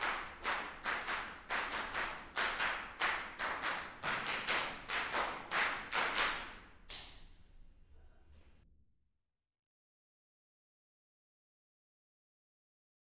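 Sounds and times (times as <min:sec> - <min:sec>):
percussion: 0:00.0 - 0:08.6.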